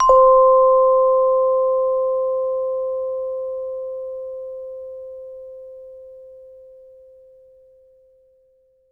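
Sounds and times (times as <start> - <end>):
glockenspiel: 0.0 - 6.6.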